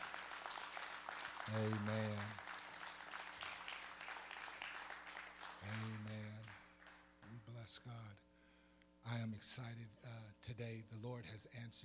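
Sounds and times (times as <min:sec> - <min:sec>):
audience hand clapping: 0:00.0 - 0:07.5
speech: 0:01.5 - 0:02.5, 0:07.7 - 0:08.3, 0:09.0 - 0:11.8.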